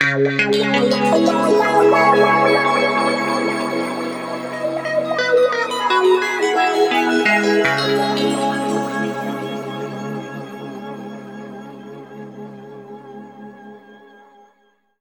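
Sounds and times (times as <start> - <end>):
guitar samples in C sharp: 0.0 - 11.7.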